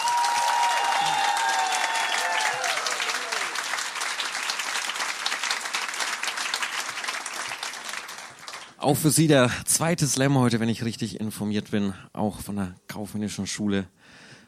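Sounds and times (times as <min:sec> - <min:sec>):
whoops and whistle-like tones: 0:00.0 - 0:02.7
audience applause: 0:00.0 - 0:08.8
speech: 0:08.8 - 0:14.2.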